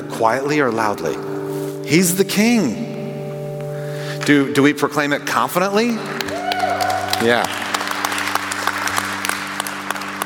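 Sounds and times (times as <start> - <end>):
speech: 0.1 - 1.3, 1.9 - 2.9, 4.2 - 6.2, 7.2 - 7.6
audience clapping: 5.8 - 10.2.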